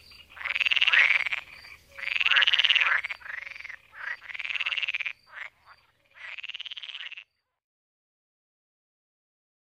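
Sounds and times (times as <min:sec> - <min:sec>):
pool frog Pelophylax lessonae rattling croaks: 0:00.0 - 0:07.6.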